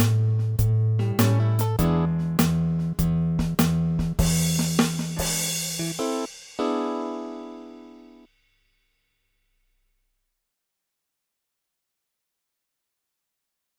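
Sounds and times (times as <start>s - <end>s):
blues bass: 0.0s - 6.3s.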